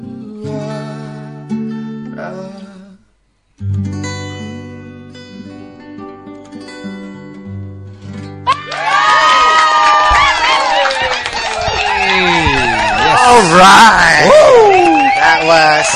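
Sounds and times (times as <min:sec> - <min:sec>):
audience cheering and shouting: 0:08.5 - 0:15.9.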